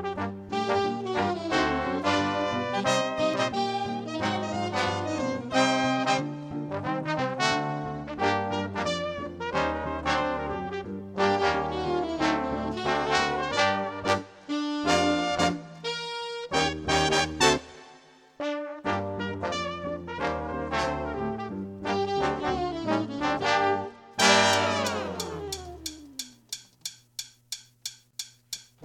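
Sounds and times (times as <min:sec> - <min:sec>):
piano: 0:00.0 - 0:25.9
drums: 0:24.2 - 0:28.8.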